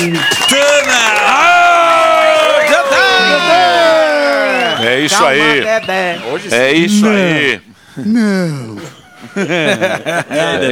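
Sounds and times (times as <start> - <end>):
speech: 0.0 - 0.3, 5.1 - 10.7
audience applause: 0.0 - 5.8
audience cheering with shouts and whoops: 0.0 - 7.6
laughter: 8.6 - 10.7.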